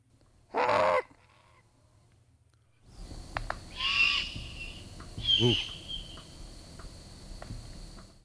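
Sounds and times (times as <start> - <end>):
juvenile great horned owl call: 2.9 - 6.5
speech: 5.4 - 5.8.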